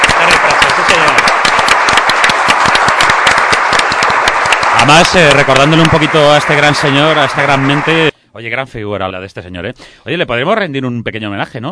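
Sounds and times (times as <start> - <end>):
crowd applause: 0.0 - 8.1
speech: 4.9 - 11.6.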